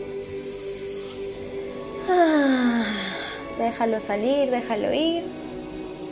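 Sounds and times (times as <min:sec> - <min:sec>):
deep drawn-out inhalation: 0:00.1 - 0:03.5
speech: 0:03.7 - 0:05.4.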